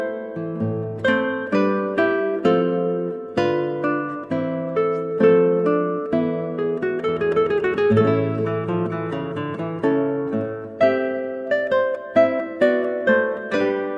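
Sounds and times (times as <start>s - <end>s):
guitar: 0.0s - 13.9s.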